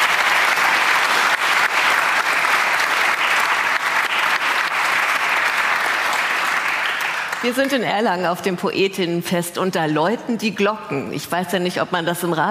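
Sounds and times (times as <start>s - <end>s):
audience applause: 0.0s - 7.8s
speech: 7.4s - 12.4s.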